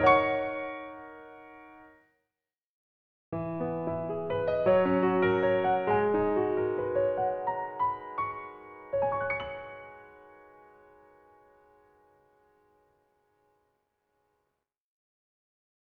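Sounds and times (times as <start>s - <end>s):
piano: 0.0s - 2.0s, 3.4s - 13.3s.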